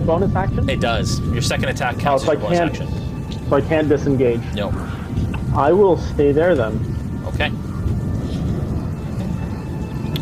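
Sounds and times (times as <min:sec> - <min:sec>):
speech: 0:00.0 - 0:07.6
low rumbling from a storm: 0:00.0 - 0:10.2.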